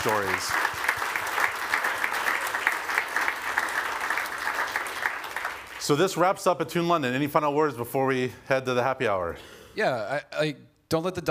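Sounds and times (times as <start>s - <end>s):
speech: 0.0s - 0.8s, 5.9s - 11.3s
audience applause: 0.0s - 6.3s.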